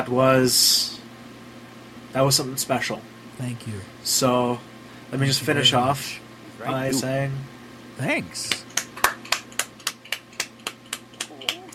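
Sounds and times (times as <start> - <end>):
speech: 0.0 - 1.0, 2.1 - 8.6
golf clap, light polite clapping: 8.4 - 11.7.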